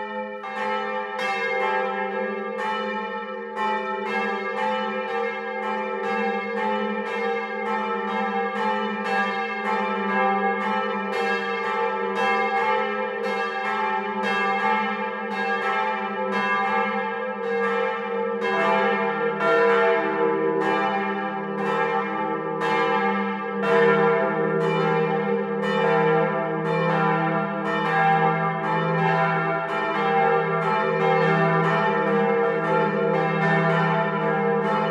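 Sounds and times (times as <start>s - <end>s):
full peal of parish church bells: 0.0s - 34.9s.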